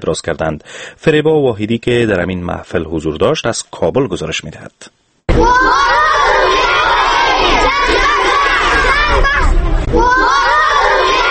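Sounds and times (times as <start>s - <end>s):
speech: 0.0s - 5.8s
students of Istiqlal High School in Kabul chanting for peace: 5.4s - 11.2s.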